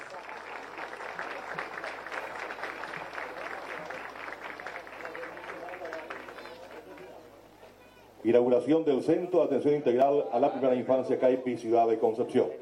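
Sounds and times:
audience applause: 0.0 - 7.3
speech: 8.2 - 12.6.

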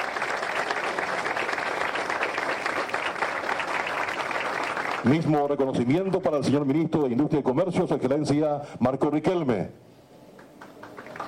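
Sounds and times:
audience applause: 0.0 - 5.9, 10.4 - 11.2
speech: 5.0 - 9.8.

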